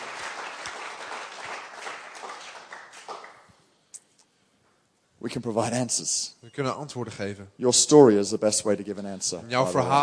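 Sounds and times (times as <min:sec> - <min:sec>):
audience applause: 0:00.0 - 0:03.5
speech: 0:05.2 - 0:10.0.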